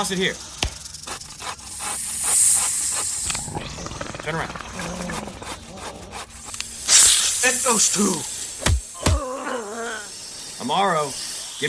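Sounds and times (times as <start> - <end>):
speech: 0.0 - 0.6, 3.5 - 5.3, 7.4 - 8.3, 10.7 - 11.6
rhythmic rasping pulses: 0.0 - 7.8
snakes pouring out of statues hissing: 0.0 - 11.6.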